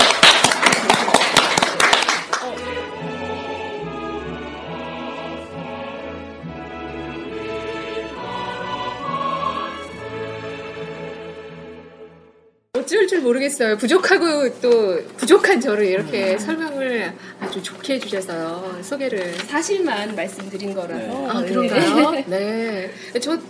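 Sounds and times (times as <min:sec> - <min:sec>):
studio audience clapping: 0:00.0 - 0:02.7
instrumental music: 0:02.3 - 0:12.6
speech: 0:13.2 - 0:23.4.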